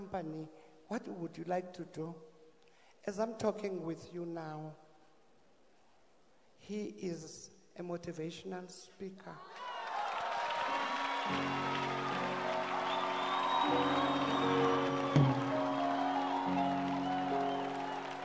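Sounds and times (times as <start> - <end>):
speech: 0.0 - 2.3, 3.0 - 4.8, 6.6 - 9.7, 11.3 - 11.9, 13.6 - 14.0
cheering: 9.4 - 18.2
audience clapping hands: 9.5 - 18.2
sustained keyboard chords: 11.2 - 18.2.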